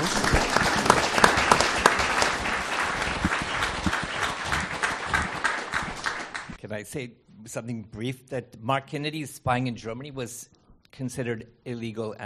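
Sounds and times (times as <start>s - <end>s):
applause: 0.0s - 6.6s
speech: 6.9s - 12.2s.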